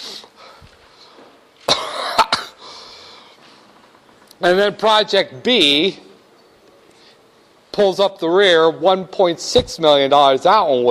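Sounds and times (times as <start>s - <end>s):
sharp explosive sneezes: 1.6s - 2.6s
loud breathy burst: 2.6s - 3.4s
speech: 4.4s - 6.1s, 7.8s - 10.8s.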